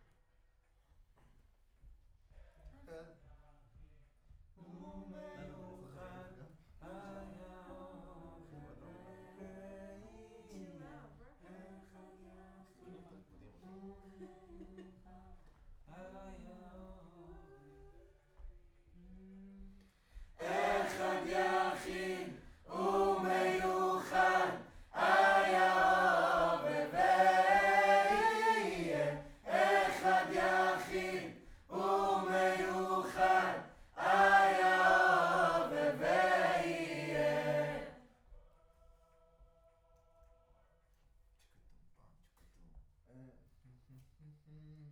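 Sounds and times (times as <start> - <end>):
distant choir: 20.4 - 38.0.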